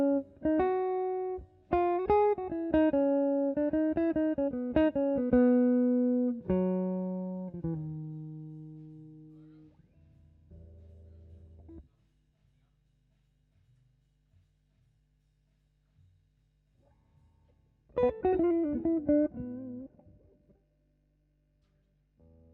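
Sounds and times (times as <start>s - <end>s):
guitar: 0.0s - 11.8s, 17.9s - 20.6s.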